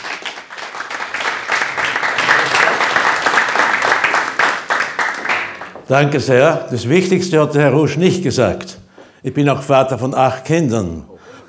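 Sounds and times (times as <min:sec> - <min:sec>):
audience applause: 0:00.0 - 0:05.9
speech: 0:05.9 - 0:11.4.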